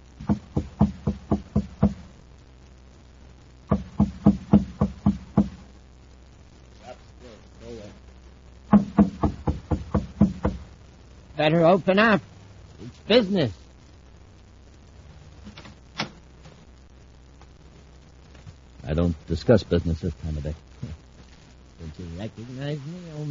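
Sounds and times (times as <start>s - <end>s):
knocking on a door: 0.2s - 2.0s, 3.7s - 5.6s, 8.7s - 10.6s
speech: 11.4s - 12.3s, 13.1s - 13.6s, 19.0s - 21.0s, 21.9s - 23.2s.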